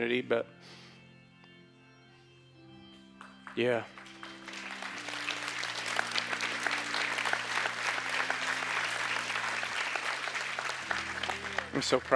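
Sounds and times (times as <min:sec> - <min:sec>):
speech: 0:00.0 - 0:00.8, 0:03.6 - 0:04.0, 0:11.7 - 0:12.1
crowd applauding: 0:03.2 - 0:12.1.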